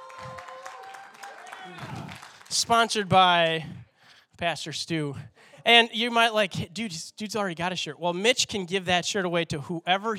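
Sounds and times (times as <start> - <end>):
audience applause: 0.0 - 2.7
speech: 1.7 - 3.8, 4.4 - 10.1.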